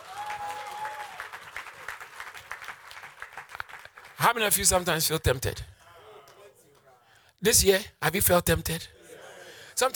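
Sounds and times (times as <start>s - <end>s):
audience clapping: 0.0s - 4.5s
speech: 4.2s - 5.8s, 7.4s - 8.9s, 9.8s - 9.9s.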